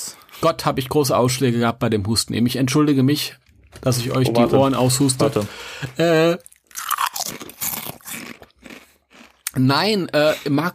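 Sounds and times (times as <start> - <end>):
speech: 0.4 - 6.5, 9.6 - 10.7
crunching a hard cough drop between teeth: 4.7 - 9.7.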